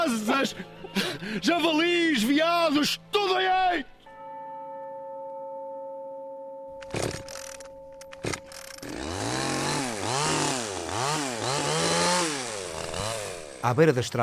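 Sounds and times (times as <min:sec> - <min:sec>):
speech: 0:00.0 - 0:04.0, 0:13.6 - 0:14.2
chainsaw cutting strawberry tree logs: 0:08.2 - 0:13.8.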